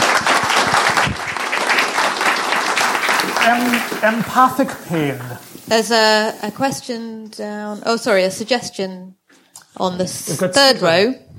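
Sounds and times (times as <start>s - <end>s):
audience applause: 0.0s - 5.9s
speech: 3.4s - 9.2s, 9.8s - 11.3s.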